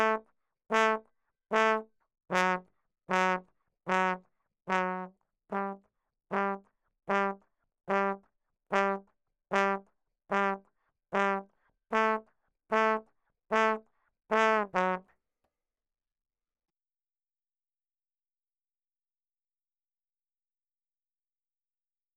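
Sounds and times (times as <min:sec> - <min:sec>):
ragtime trombone: 0:00.0 - 0:15.0.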